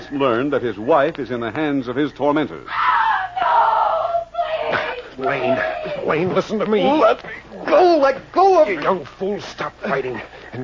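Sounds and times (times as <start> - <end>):
speech: 0.1 - 2.8, 4.7 - 10.6
woman screaming in the night: 2.7 - 6.2
laughter: 4.5 - 7.9, 9.7 - 10.6.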